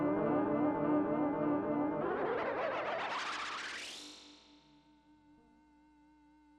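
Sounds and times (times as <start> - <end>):
digital delay effect: 0.1 - 4.4.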